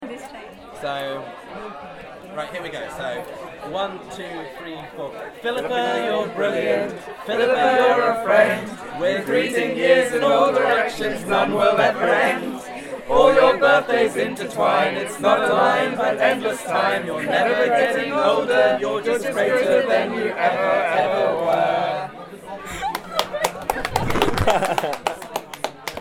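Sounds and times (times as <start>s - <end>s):
people singing birthday song at the Red Lion pub: 5.3s - 22.8s
laughter: 22.5s - 25.9s.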